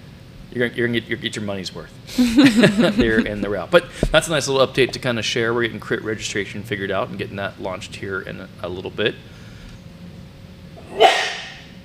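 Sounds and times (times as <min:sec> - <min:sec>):
speech: 0:00.5 - 0:09.3
laughter: 0:02.1 - 0:03.5
sneeze: 0:10.8 - 0:11.7.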